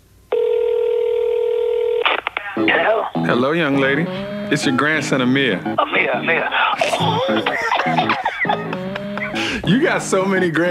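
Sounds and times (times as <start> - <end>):
phone line tone opening a recorded call: 0.3 - 5.8
speech: 2.6 - 8.9, 9.6 - 10.6
laughter: 5.8 - 9.8.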